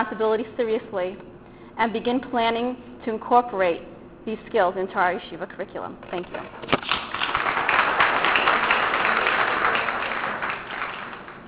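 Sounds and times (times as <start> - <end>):
speech: 0.0 - 6.8
audience applause: 6.8 - 11.4.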